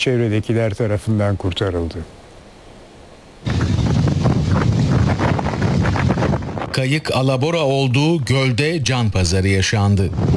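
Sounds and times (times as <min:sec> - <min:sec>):
speech: 0:00.0 - 0:02.2, 0:06.8 - 0:10.3
strong wind over Küçükçekmece Lake in Istanbul: 0:03.4 - 0:07.7, 0:09.7 - 0:10.3.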